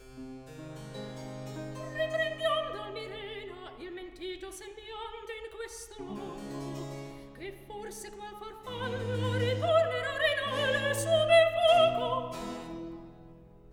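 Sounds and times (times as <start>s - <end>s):
opera recitative: 1.8s - 13.0s.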